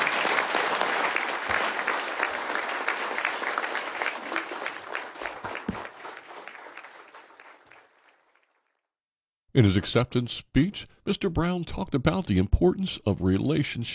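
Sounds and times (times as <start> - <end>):
audience applauding an award recipient: 0.0 - 8.7
speech: 9.6 - 13.9.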